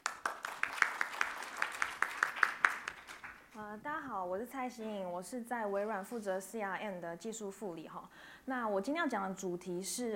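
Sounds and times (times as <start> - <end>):
audience applause: 0.0 - 3.5
speech: 3.7 - 10.1.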